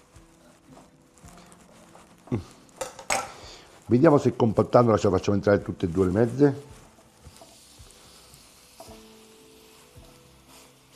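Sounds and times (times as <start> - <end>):
meat sizzling while cooking in pan: 0.0 - 10.9
speech: 2.3 - 2.6, 3.9 - 6.8.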